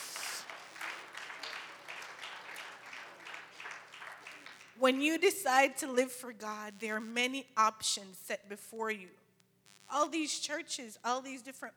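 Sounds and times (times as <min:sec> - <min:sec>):
audience hand clapping: 0:00.0 - 0:05.1
speech: 0:04.8 - 0:09.2, 0:09.9 - 0:11.7.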